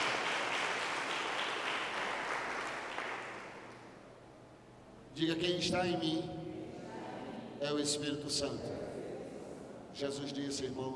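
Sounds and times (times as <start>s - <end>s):
audience applauding: 0.0s - 3.7s
speech: 5.2s - 6.4s, 7.6s - 8.9s, 10.0s - 10.9s.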